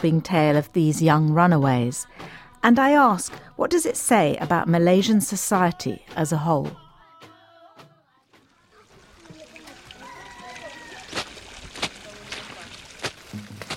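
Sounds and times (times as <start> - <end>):
speech: 0.0 - 6.8
running water at a village standpipe in Malaysia: 8.3 - 13.7.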